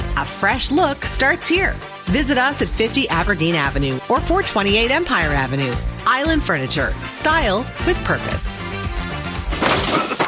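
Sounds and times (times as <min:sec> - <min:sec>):
speech: 0:00.2 - 0:08.8
smashing and breaking during a messy bathroom renovation: 0:09.5 - 0:10.2.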